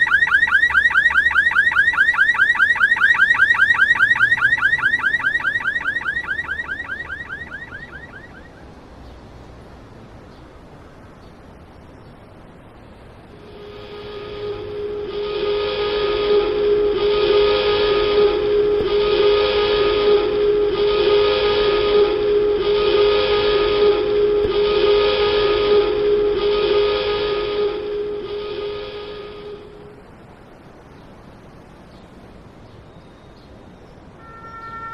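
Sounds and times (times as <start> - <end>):
alarms: 0.0 - 8.6, 13.4 - 29.9, 34.2 - 34.9
sirens: 0.0 - 8.8, 13.3 - 30.2, 34.2 - 34.9.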